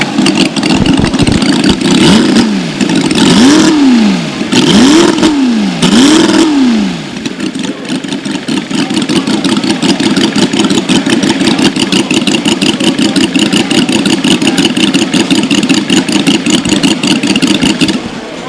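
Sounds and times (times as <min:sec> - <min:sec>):
flathead eight engine: 0:00.0 - 0:18.4.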